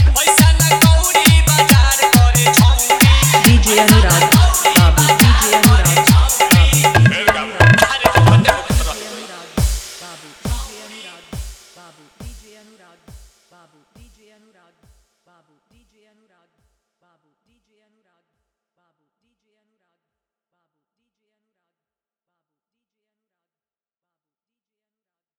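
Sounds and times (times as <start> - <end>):
hard dholki drum mix: 0.0 - 14.2.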